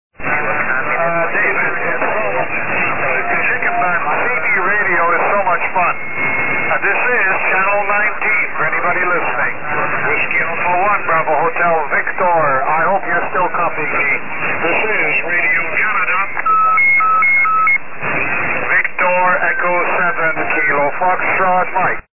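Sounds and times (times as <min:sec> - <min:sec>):
CB radio: 0:00.2 - 0:22.1.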